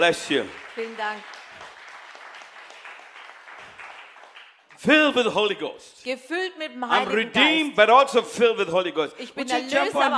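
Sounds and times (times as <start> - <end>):
speech: 0.0 - 1.4, 4.8 - 10.1
audience applause: 0.0 - 4.9.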